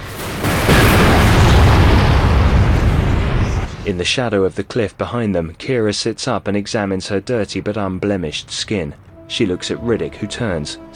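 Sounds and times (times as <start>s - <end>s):
fireball explosion in a film: 0.0s - 4.0s
speech: 3.9s - 10.9s.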